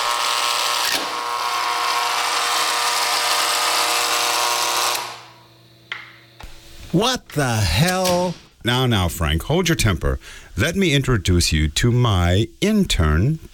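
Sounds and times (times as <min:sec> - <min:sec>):
door buzzer being pressed: 0:00.0 - 0:05.5
speech: 0:06.9 - 0:13.5.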